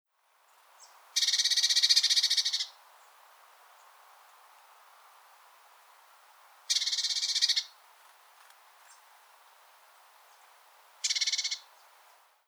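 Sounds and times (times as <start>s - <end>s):
Eurasian blue tit churring: 1.2s - 2.8s, 6.7s - 7.7s, 11.0s - 11.7s.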